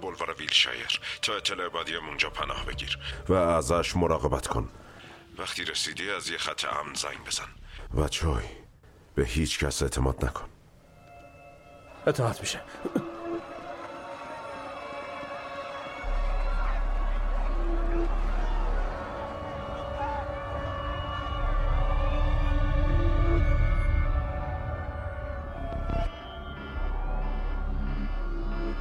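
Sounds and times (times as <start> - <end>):
speech: 0.0 - 4.8, 5.4 - 8.6, 9.2 - 10.6, 12.0 - 13.2
emergency alert electronic siren wailing: 16.0 - 28.7.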